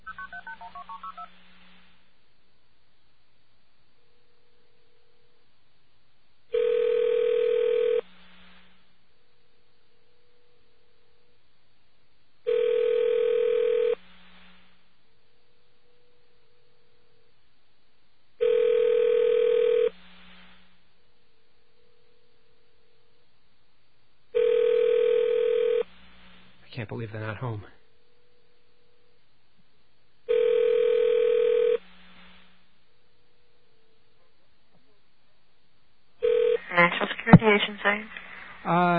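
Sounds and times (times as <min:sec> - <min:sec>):
faint steady telephone line hum: 0:00.0 - 0:38.9
telephone line buzzing tone bursts: 0:06.5 - 0:08.1, 0:12.5 - 0:14.0, 0:18.4 - 0:20.0, 0:24.4 - 0:25.9, 0:30.3 - 0:31.8, 0:36.2 - 0:36.6
telephone dialing tones: 0:06.6 - 0:08.0, 0:12.5 - 0:14.0, 0:18.4 - 0:19.9, 0:24.4 - 0:25.8, 0:30.3 - 0:31.8, 0:36.2 - 0:37.5
speech: 0:26.8 - 0:27.8.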